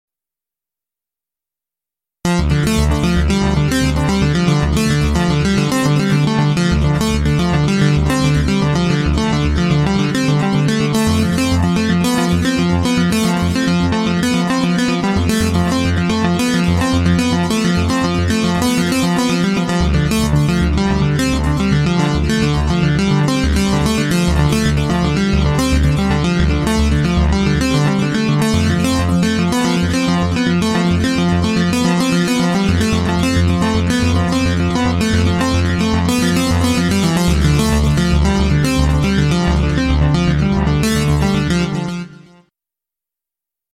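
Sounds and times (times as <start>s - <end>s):
sequenced DDL synth lead: 2.3s - 42.4s.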